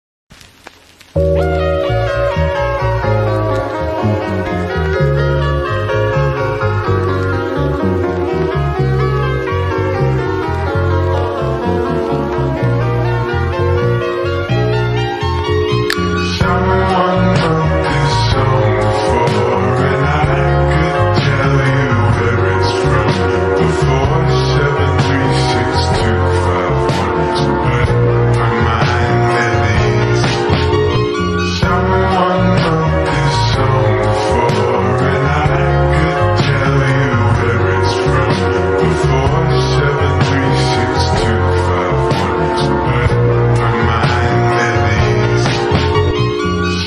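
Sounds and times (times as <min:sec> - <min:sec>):
slowed intro music: 0:00.3 - 0:46.8.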